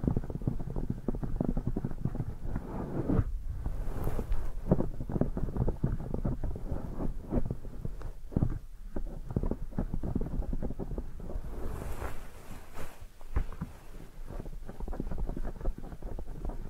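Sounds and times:
deep ear massage rubbing and pressing: 0.0 - 16.6
softer airier brushing strokes: 2.6 - 4.8, 11.2 - 16.0.

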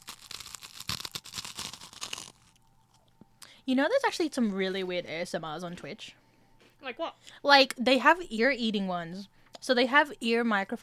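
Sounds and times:
crunching garlic bread: 0.0 - 3.0
speech: 3.7 - 6.2, 6.8 - 10.8.

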